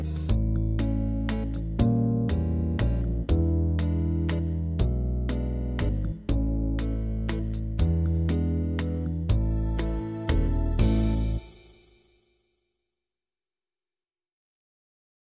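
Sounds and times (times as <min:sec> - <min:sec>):
festival waltz music: 0:00.0 - 0:11.6.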